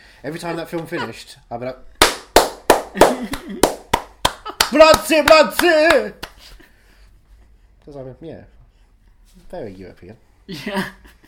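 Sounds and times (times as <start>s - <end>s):
speech: 0.2s - 2.0s, 2.9s - 3.8s, 4.7s - 6.2s, 7.9s - 8.6s, 9.4s - 11.2s
hands clapping: 2.0s - 6.5s.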